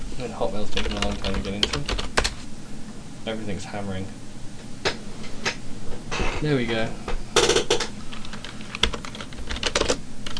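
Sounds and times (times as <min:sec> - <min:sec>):
speech: 0:00.2 - 0:02.2, 0:03.2 - 0:04.2, 0:06.4 - 0:07.1
typing on a computer keyboard: 0:00.7 - 0:02.4, 0:07.4 - 0:10.3.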